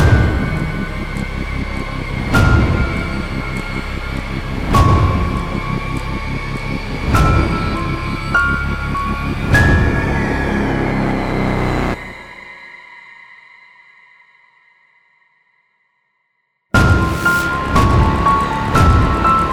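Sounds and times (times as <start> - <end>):
scary sound: 0.0 - 12.6, 16.8 - 19.5.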